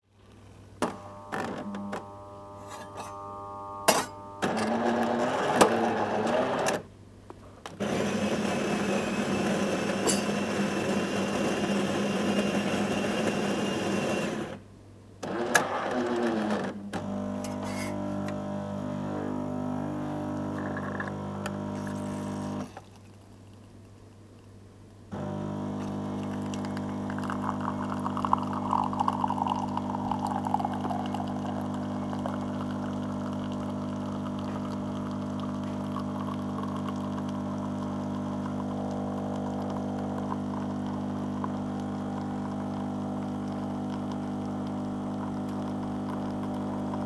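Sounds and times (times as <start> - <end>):
vending machine preparing a cup of coffee: 0.8 - 6.9, 7.8 - 14.6, 15.2 - 23.2, 25.1 - 47.0.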